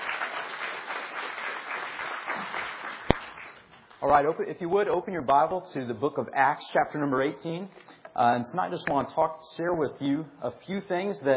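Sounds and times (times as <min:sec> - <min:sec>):
audience round of applause: 0:00.0 - 0:03.6
speech: 0:04.0 - 0:11.3.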